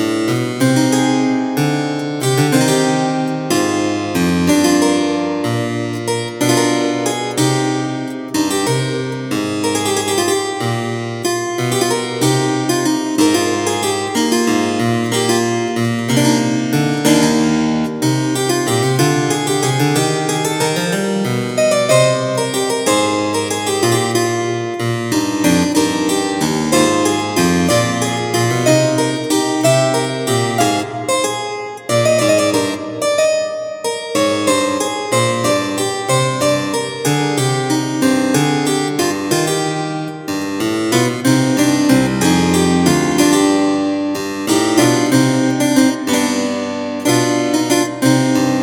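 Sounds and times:
counterpoint study: 0.2 - 48.6.

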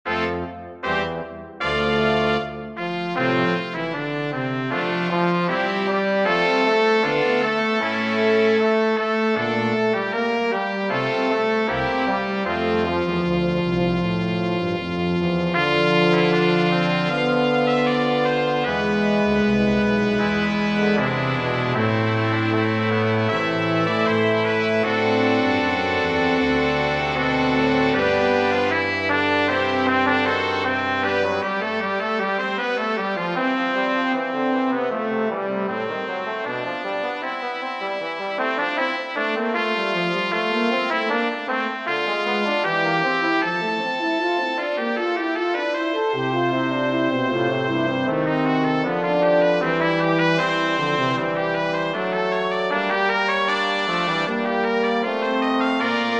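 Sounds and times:
brass sextet playing: 0.1 - 56.1.

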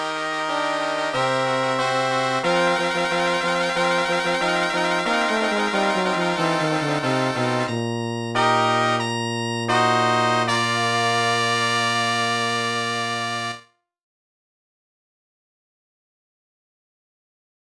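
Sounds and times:
fanfare: 0.0 - 13.6.

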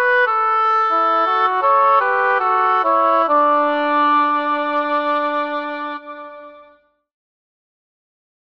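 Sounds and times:
small oboe duet in D: 0.0 - 6.8.

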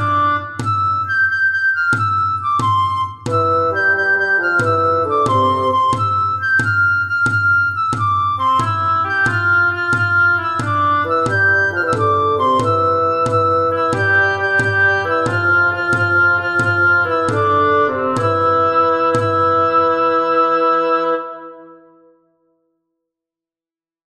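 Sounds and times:
percussion: 0.0 - 20.5
woodwind trio playing: 0.0 - 22.1.

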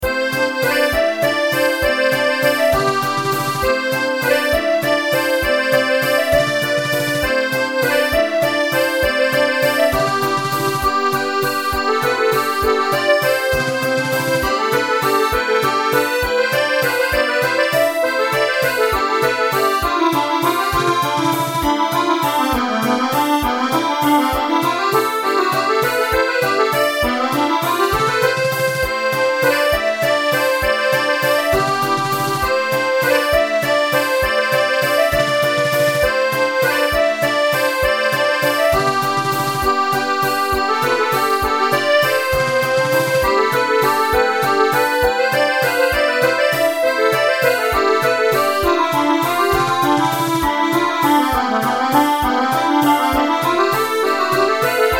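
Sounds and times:
waltz music: 0.0 - 54.9.

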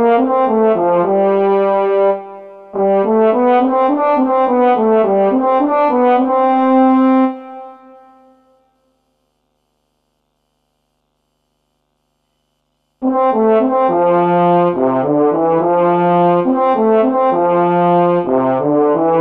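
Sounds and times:
short trombone duet: 0.0 - 7.8, 13.0 - 19.1.

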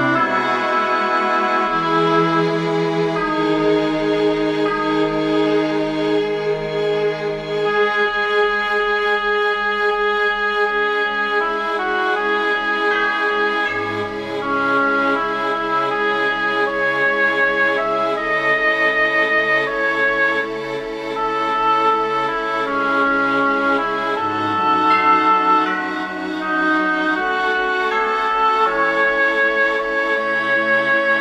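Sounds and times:
piece for oboe and strings: 0.0 - 31.1.

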